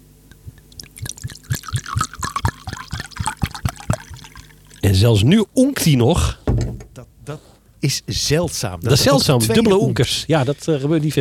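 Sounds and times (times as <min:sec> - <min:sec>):
drink pouring into a glass: 0:00.3 - 0:05.0
speech: 0:04.9 - 0:06.4, 0:07.3 - 0:11.2.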